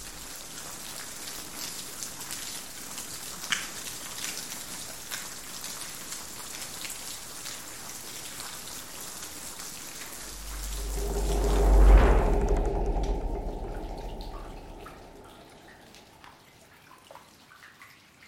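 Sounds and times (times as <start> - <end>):
rain: 0.0 - 18.2
thunder: 10.2 - 16.2.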